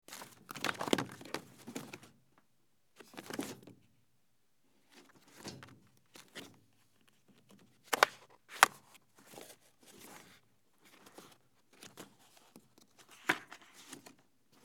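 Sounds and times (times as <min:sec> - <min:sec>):
file folder: 0:00.1 - 0:02.2, 0:07.1 - 0:14.1.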